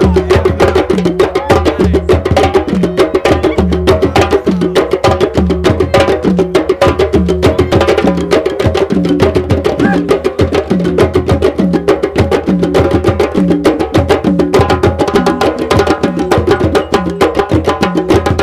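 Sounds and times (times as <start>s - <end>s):
drums: 0.0s - 18.4s.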